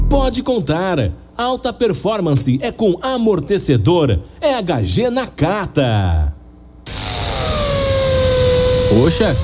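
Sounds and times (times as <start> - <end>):
speech: 0.2 - 7.1, 8.9 - 9.4
power drill drilling: 6.9 - 9.4.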